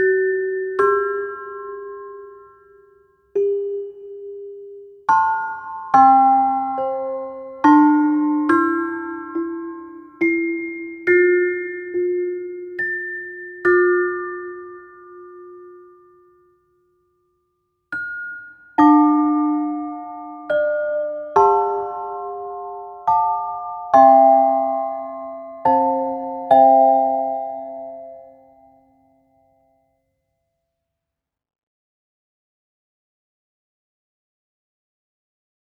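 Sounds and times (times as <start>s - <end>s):
chime melody: 0.0s - 16.6s, 17.9s - 29.0s.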